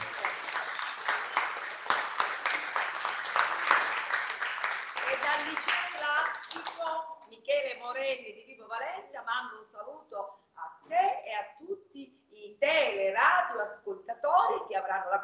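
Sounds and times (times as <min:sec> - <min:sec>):
applause: 0:00.0 - 0:06.8
speech: 0:05.4 - 0:11.8, 0:12.6 - 0:15.2.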